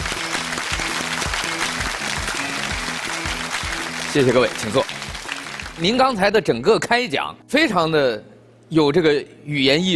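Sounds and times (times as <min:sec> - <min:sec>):
audience clapping for a naval captain's talk: 0:00.0 - 0:06.1
speech: 0:04.2 - 0:05.0, 0:05.8 - 0:09.9.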